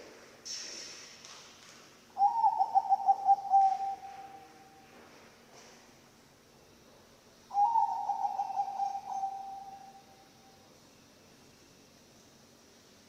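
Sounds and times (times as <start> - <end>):
zebra dove purring song: 2.2 - 4.8, 7.5 - 10.0.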